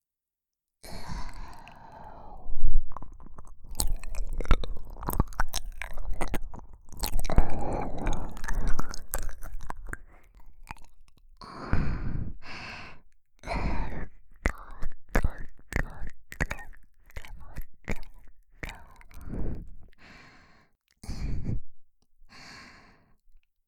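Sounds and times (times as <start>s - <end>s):
ASMR ear licking on a binaural microphone: 0.8s - 12.6s, 13.4s - 20.2s.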